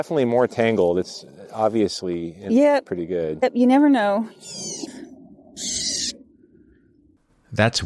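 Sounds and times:
speech: 0:00.0 - 0:05.0, 0:05.6 - 0:06.0, 0:07.6 - 0:07.8
Bewick's wren giving scolding calls in a mist net: 0:04.3 - 0:05.0, 0:05.6 - 0:06.2.

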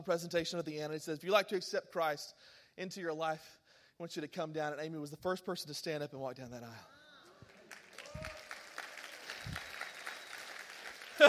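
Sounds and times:
speech: 0:00.0 - 0:06.9
audience clapping: 0:07.3 - 0:11.2.

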